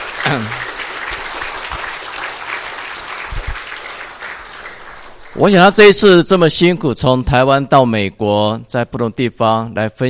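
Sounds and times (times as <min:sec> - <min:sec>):
audience applause: 0:00.0 - 0:05.9
speech: 0:00.2 - 0:00.6, 0:05.4 - 0:10.0.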